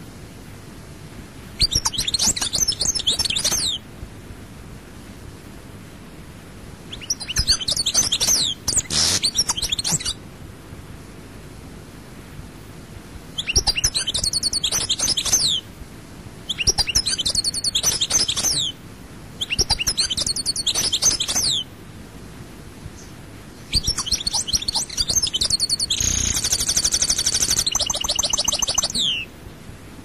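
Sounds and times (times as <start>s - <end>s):
European goldfinch twittering song: 1.6s - 3.8s, 6.9s - 10.2s, 13.4s - 15.6s, 16.5s - 18.8s, 19.4s - 21.7s, 23.0s - 29.3s.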